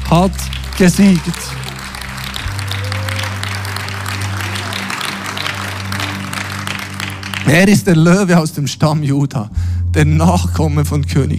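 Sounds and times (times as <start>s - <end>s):
large audience applause: 0.0s - 8.0s
speech: 0.1s - 1.7s, 7.5s - 11.3s.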